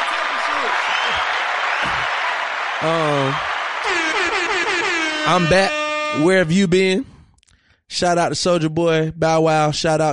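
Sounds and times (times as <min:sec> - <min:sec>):
applause: 0:00.0 - 0:04.9
speech: 0:02.8 - 0:04.4, 0:05.3 - 0:07.1, 0:07.9 - 0:10.1.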